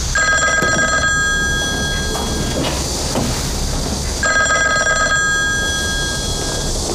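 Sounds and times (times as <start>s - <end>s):
telephone bell ringing: 0.2s - 2.8s, 4.2s - 6.7s.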